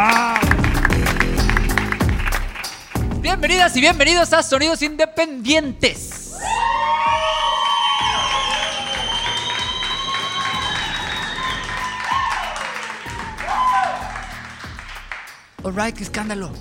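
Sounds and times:
live audience applause: 0.0s - 3.0s, 6.4s - 15.4s
speech: 3.3s - 6.2s, 15.6s - 16.5s.

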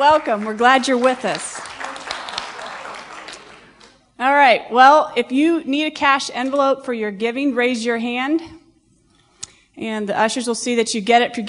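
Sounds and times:
speech: 0.0s - 1.6s, 4.2s - 8.6s, 9.8s - 11.4s
audience clapping: 0.0s - 4.0s.

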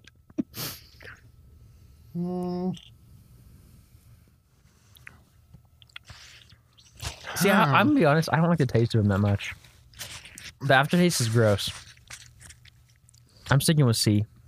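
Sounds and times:
speech: 2.2s - 2.9s, 7.4s - 9.6s, 10.6s - 11.8s, 13.5s - 14.3s
person chewing and biting into a sour fruit: 4.9s - 7.8s, 9.4s - 13.4s.

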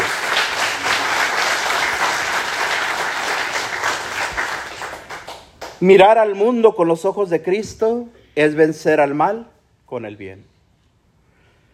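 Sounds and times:
audience applause: 0.0s - 5.7s
speech: 5.8s - 10.5s.

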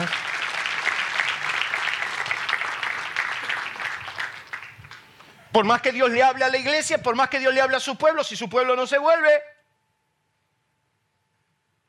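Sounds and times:
crowd clapping: 0.0s - 5.4s
speech: 5.6s - 9.5s.

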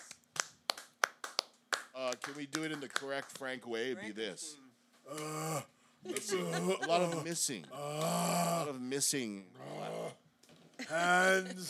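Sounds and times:
clapping: 0.0s - 3.5s
speech: 2.0s - 10.2s, 10.9s - 11.6s
laughter: 6.0s - 7.7s, 10.8s - 11.6s.

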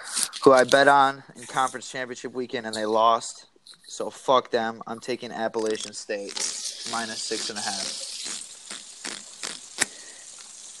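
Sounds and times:
speech: 0.4s - 8.1s
washing dishes: 5.7s - 10.7s.

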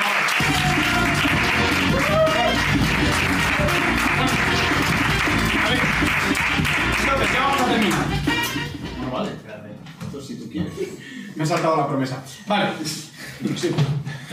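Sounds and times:
loud applause: 0.0s - 8.3s
speech: 11.4s - 14.1s.

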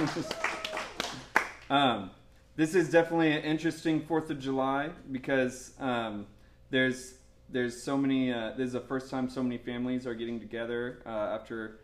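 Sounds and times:
speech: 0.0s - 0.4s, 1.7s - 11.8s
audience clapping: 0.0s - 1.7s.

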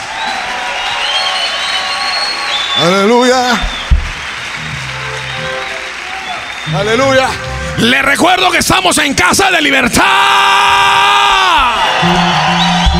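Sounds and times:
audience applause: 0.0s - 8.6s, 11.4s - 12.9s
speech: 2.8s - 3.8s, 6.7s - 11.2s, 12.0s - 12.5s
low thump: 3.6s - 4.2s.

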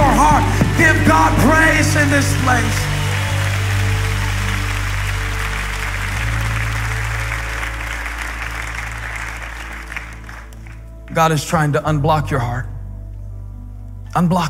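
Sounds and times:
audience clapping hands: 0.0s - 11.6s
speech: 1.9s - 2.9s, 11.2s - 12.7s, 14.1s - 14.4s.

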